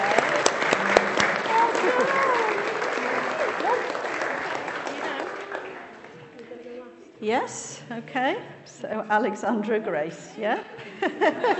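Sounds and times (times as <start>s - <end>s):
audience clapping after a baptism: 0.0s - 6.4s
speech: 7.2s - 11.5s
laughter: 10.6s - 11.5s.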